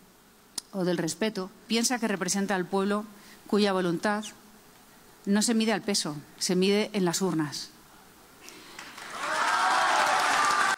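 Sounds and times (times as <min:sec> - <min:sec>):
speech: 0:00.7 - 0:04.4, 0:05.2 - 0:07.8
audience applause: 0:08.7 - 0:10.7.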